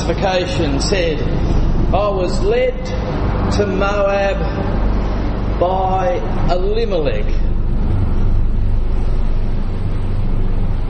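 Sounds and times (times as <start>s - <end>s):
helicopter flying overhead: 0.0s - 10.8s
speech: 0.1s - 4.7s, 5.6s - 7.5s.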